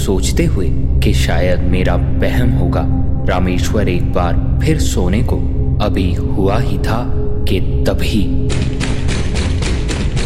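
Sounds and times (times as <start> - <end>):
speech: 0.0 - 8.7
constant low rumble: 0.0 - 10.2
knocks on a house door: 8.5 - 10.2.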